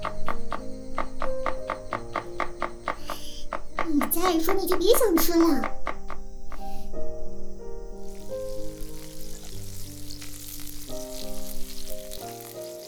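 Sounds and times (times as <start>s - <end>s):
soft melodic music bed: 0.0s - 12.8s
speech: 4.3s - 5.8s
food sizzling and frying in a pan: 8.0s - 12.8s.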